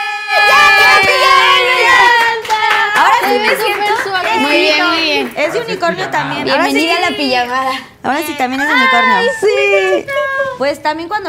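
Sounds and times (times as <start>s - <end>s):
small group clapping: 0.0s - 7.5s
speech: 4.4s - 11.2s.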